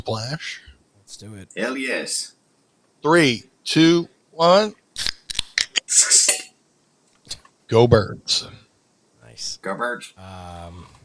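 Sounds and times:
speech: 0:00.0 - 0:02.4, 0:03.0 - 0:04.8, 0:05.9 - 0:06.5, 0:07.3 - 0:08.6, 0:09.4 - 0:11.0
mouth imitation of a soda can cracking open: 0:05.0 - 0:06.2.

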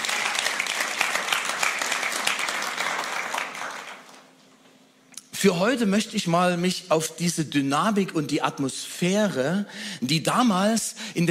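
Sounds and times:
audience applause: 0:00.0 - 0:04.2
speech: 0:05.4 - 0:11.2.

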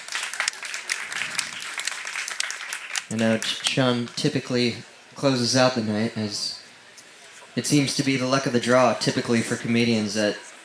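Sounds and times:
comedy show audience applause welcoming a comedian: 0:00.0 - 0:04.2
speech: 0:03.1 - 0:06.5, 0:07.6 - 0:10.5.

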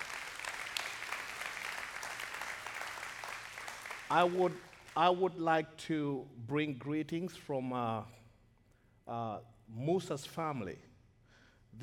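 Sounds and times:
audience clapping: 0:00.0 - 0:05.2
speech: 0:04.1 - 0:08.2, 0:09.1 - 0:10.9.

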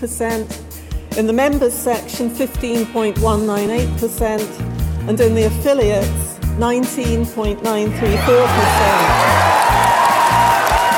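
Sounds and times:
speech: 0:00.0 - 0:00.6, 0:01.2 - 0:09.5
audience clapping and cheers at Labour Party leadership result announcement: 0:08.2 - 0:10.9.

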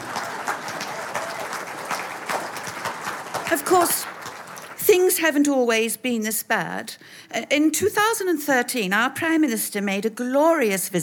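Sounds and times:
audience clapping: 0:00.0 - 0:05.2
speech: 0:03.5 - 0:04.1, 0:04.9 - 0:11.0.

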